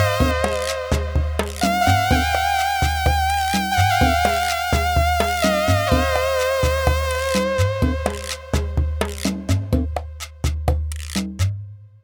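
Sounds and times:
cumbia music loop: 0:00.0 - 0:11.6.

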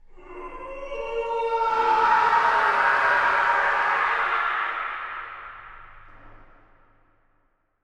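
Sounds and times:
gut-wrenching death scream: 0:00.2 - 0:05.9.

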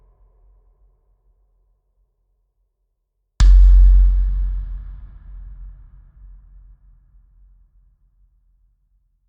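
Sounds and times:
indigenous kick drums: 0:03.4 - 0:07.0.

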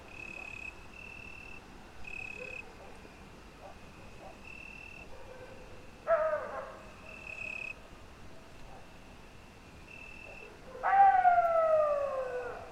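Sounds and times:
coyote wailing calls in a pine forest at midnight: 0:10.8 - 0:12.6.

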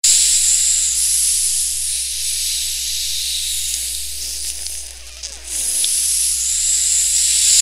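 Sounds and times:
acid synth effect: 0:00.0 - 0:07.6.

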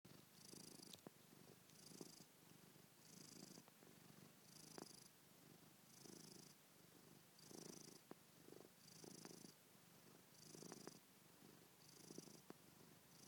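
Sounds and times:
domestic cat purring: 0:00.1 - 0:13.2.

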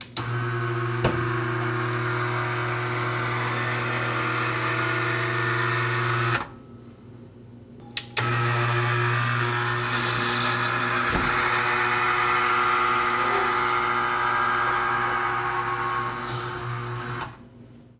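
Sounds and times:
machine running: 0:00.2 - 0:06.5, 0:08.0 - 0:17.4.

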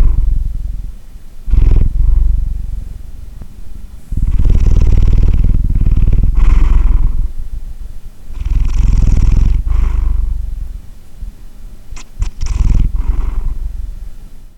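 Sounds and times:
cat purring: 0:00.0 - 0:10.9, 0:12.0 - 0:14.1
short clicks: 0:12.0 - 0:12.5.

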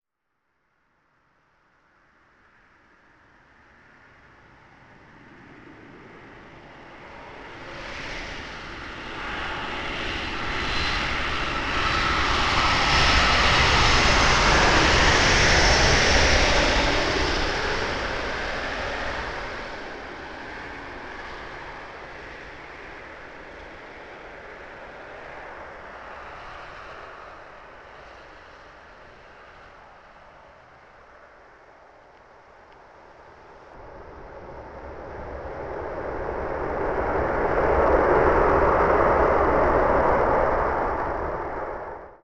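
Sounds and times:
airplane: 0:01.1 - 0:42.2.

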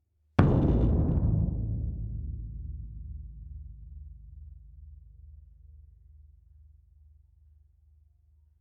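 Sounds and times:
single bass drum hit: 0:00.4 - 0:04.6.

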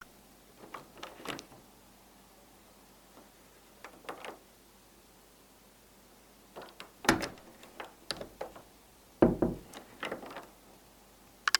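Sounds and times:
door opening and closing quietly: 0:00.0 - 0:01.7, 0:03.1 - 0:04.5, 0:06.5 - 0:10.6.

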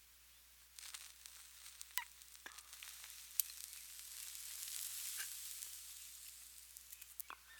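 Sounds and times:
person smoking cigarette: 0:00.7 - 0:07.5.

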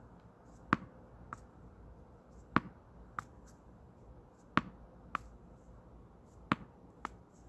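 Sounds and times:
tennis ball bouncing: 0:00.6 - 0:01.5, 0:02.5 - 0:03.5, 0:04.5 - 0:05.4, 0:06.4 - 0:07.2.

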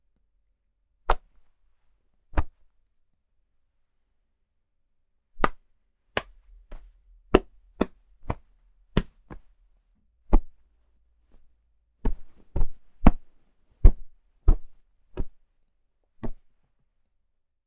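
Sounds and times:
clothing rustling: 0:06.3 - 0:15.4.

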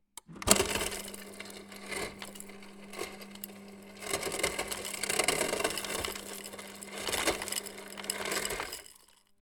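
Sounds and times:
ice dispenser: 0:00.2 - 0:09.4.

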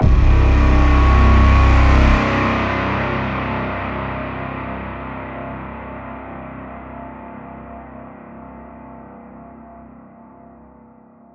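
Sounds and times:
lifeless braam hit in C: 0:00.0 - 0:04.1.

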